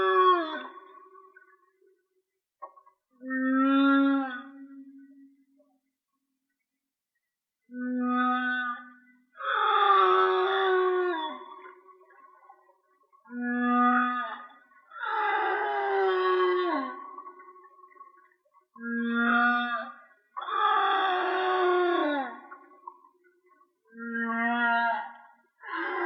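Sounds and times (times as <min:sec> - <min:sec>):
whale song moans: 0:03.2 - 0:05.5, 0:07.7 - 0:23.2, 0:23.9 - 0:26.0.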